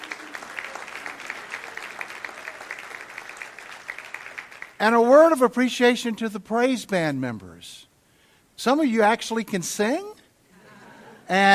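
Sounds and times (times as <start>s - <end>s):
audience applause: 0.0s - 4.8s
speech: 4.8s - 7.9s, 8.6s - 10.2s, 11.3s - 11.5s.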